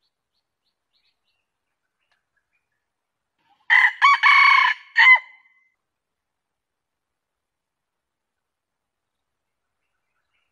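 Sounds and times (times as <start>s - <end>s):
junglefowl crowing: 3.7s - 5.4s.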